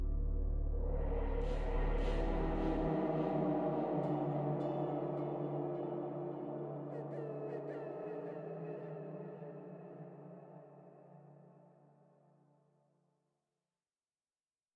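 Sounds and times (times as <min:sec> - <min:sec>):
ambience: 0:00.0 - 0:11.2.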